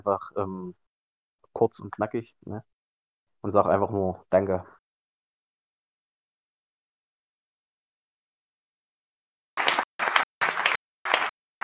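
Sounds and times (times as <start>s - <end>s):
speech: 0.0s - 0.8s, 1.6s - 2.7s, 3.4s - 4.8s
audience applause: 9.6s - 11.6s.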